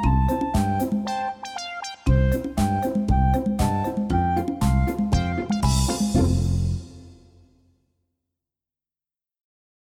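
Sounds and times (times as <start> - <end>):
melody: 0.0 - 7.1.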